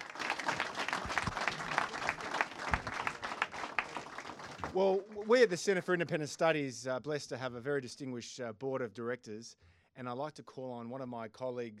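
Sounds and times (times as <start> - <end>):
audience applause: 0.0 - 5.3
speech: 4.8 - 11.7.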